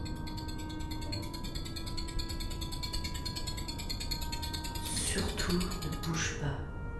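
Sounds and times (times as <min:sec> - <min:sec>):
miniature combat drone: 0:00.0 - 0:06.2
speech: 0:05.5 - 0:06.8.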